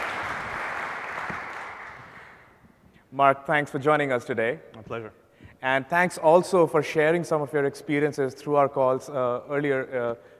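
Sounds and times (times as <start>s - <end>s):
audience applause welcoming a guest onto a stage: 0.0s - 2.5s
speech: 3.2s - 10.3s.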